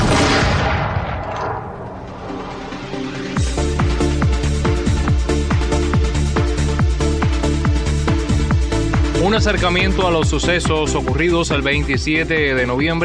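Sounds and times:
dramatized firing squad volley from the 1871 execution of medical students: 0.0s - 2.8s
rhythmic booming pulses: 0.0s - 11.8s
speech: 9.3s - 13.0s.

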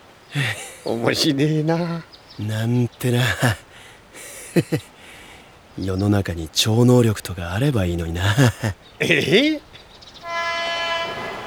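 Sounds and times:
speech: 0.3s - 3.6s, 4.6s - 4.9s, 5.8s - 9.7s
laughter: 0.3s - 9.8s, 11.1s - 11.4s
passing train: 9.7s - 11.4s.

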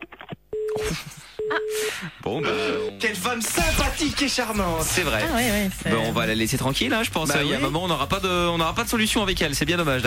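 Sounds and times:
telephone tone after the caller hangs up: 0.5s - 0.8s, 1.4s - 3.0s
speech: 0.9s - 10.0s.

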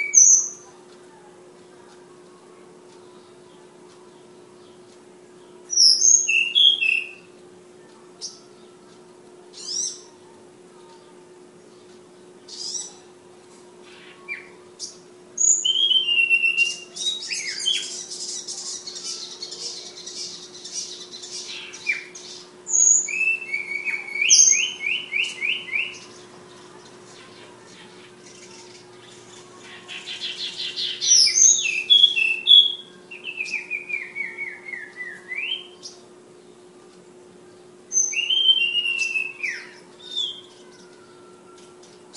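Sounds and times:
flowerpecker singing: 0.0s - 13.2s, 13.8s - 42.1s
steady low hum: 0.0s - 42.1s.

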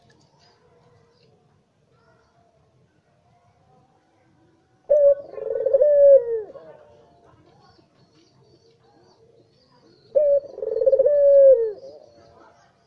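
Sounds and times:
Barbary dove long rolling coo: 4.9s - 7.0s, 10.1s - 12.4s.

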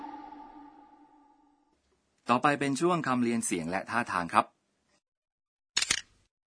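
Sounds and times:
speech: 2.3s - 4.6s
camera shutter click: 5.8s - 6.1s.

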